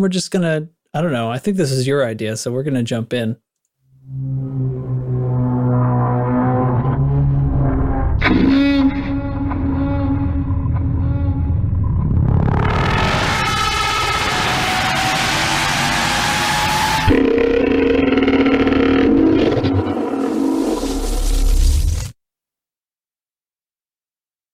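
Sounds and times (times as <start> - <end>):
speech: 0.0 - 4.8
Thargoid alien sound effect: 3.9 - 22.1.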